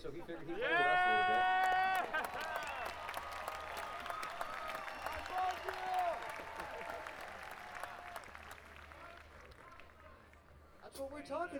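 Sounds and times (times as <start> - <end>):
speech: 0.0 - 1.5, 11.2 - 11.5
crowd cheers and whoops: 0.6 - 8.4
audience applause: 1.0 - 10.4.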